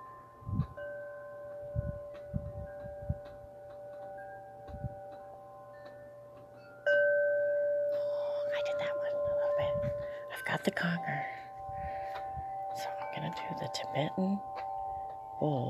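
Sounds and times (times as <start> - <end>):
wind chimes in a gentle wind: 0.0 - 15.6
speech: 14.0 - 14.6, 15.4 - 15.6.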